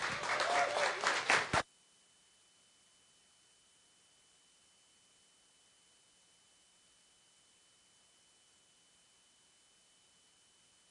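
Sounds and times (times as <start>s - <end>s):
church congregation applause at a morning service: 0.0s - 1.6s.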